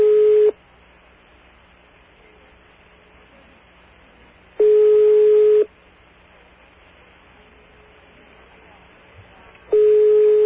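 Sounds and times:
unanswered telephone line ringback tone: 0.0 - 0.6, 4.6 - 5.7, 9.7 - 10.4.

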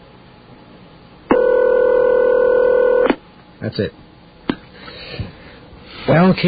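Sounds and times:
telephone ringing on the line: 1.3 - 3.2
speech: 3.6 - 4.0, 6.1 - 6.4.

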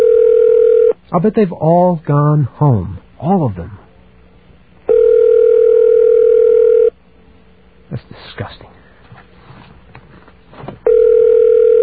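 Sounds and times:
telephone ringback tone heard from the caller's end: 0.0 - 1.0, 4.9 - 6.9, 10.8 - 11.8
speech: 1.1 - 3.8, 7.9 - 8.8.

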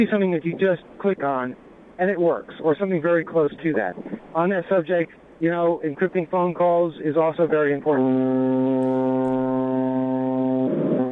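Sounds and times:
speech: 0.0 - 9.0
ship's horn blasting: 7.6 - 11.1.

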